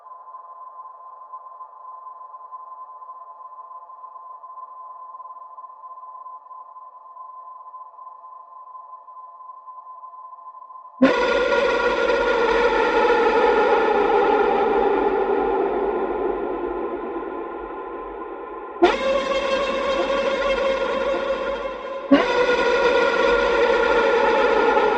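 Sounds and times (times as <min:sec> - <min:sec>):
lead sound effects: 0:11.0 - 0:24.9.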